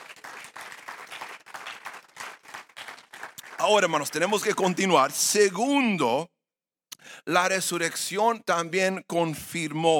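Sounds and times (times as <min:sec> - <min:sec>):
audience applauding: 0:00.0 - 0:04.7
speech: 0:03.6 - 0:06.3, 0:07.2 - 0:09.9.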